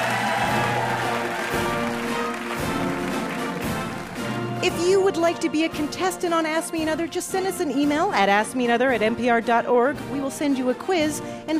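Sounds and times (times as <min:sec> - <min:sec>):
audience applause: 0:00.0 - 0:04.6
speech: 0:04.6 - 0:11.5.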